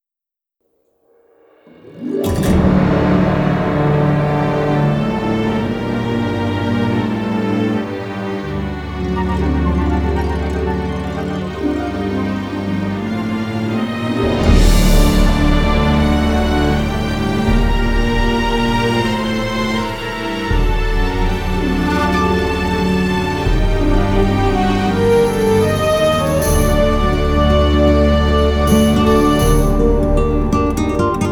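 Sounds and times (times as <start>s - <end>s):
Spanish travel music: 1.7s - 31.3s.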